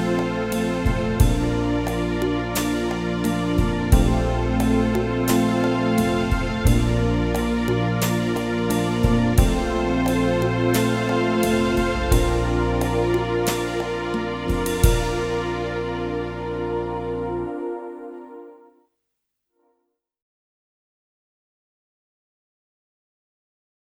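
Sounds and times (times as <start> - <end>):
clarinet: 0.0 - 18.7.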